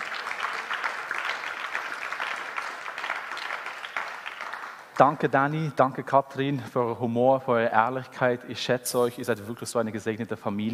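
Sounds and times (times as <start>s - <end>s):
audience applause for the worship band: 0.0s - 5.2s
speech: 5.0s - 10.7s.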